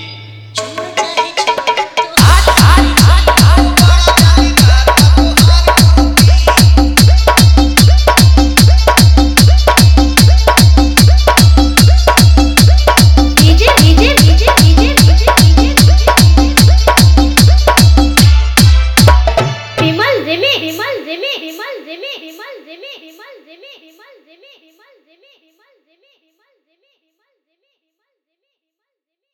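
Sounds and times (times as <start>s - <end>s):
Bhojpuri DJ remix dance music: 0.6s - 23.2s.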